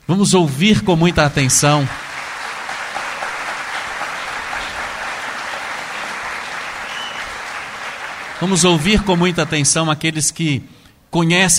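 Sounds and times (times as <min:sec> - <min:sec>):
speech: 0:00.1 - 0:02.1, 0:08.4 - 0:11.5
audience applause: 0:01.1 - 0:09.9.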